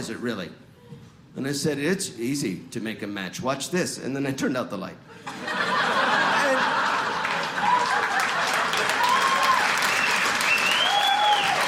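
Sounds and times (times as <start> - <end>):
speech: 0.0 - 0.7, 1.3 - 6.0
audience laughing: 5.2 - 9.0
audience clapping: 6.4 - 11.6.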